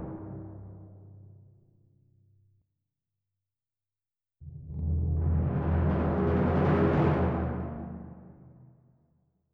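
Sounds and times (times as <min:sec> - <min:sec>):
timpani: 0:04.7 - 0:08.6.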